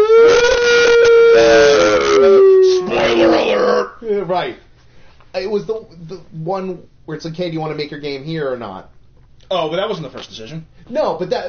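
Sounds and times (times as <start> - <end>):
voice imitating a siren: 0.0 - 4.0
speech: 4.3 - 4.7, 5.3 - 11.4.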